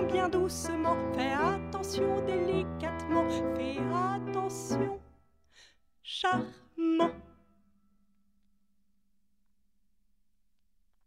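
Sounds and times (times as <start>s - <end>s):
piano: 0.0s - 8.2s.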